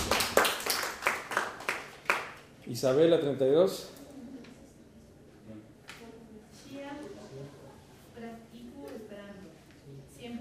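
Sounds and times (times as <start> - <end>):
people clapping for a student: 0.0 - 2.5
speech: 2.7 - 4.0.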